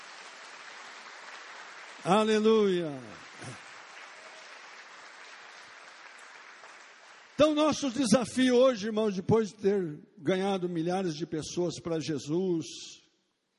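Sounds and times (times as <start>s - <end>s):
audience applause: 0.0s - 8.0s
speech: 2.0s - 3.6s, 7.4s - 13.0s.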